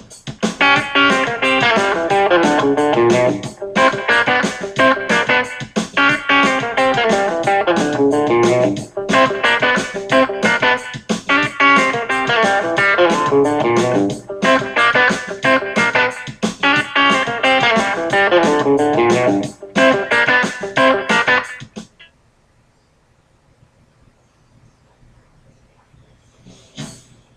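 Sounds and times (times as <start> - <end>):
funky country lick in G: 0.3 - 22.1.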